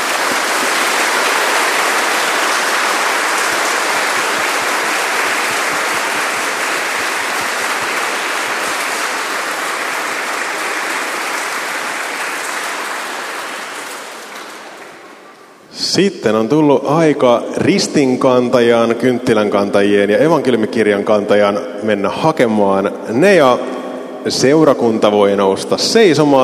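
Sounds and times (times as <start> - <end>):
crowd applause: 0.0 - 15.6
speech: 16.0 - 26.4.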